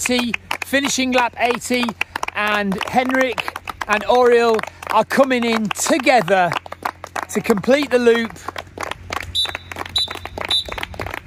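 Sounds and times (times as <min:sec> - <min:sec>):
speech: 0:00.0 - 0:08.6
whistle signalling three minutes left: 0:09.3 - 0:10.9.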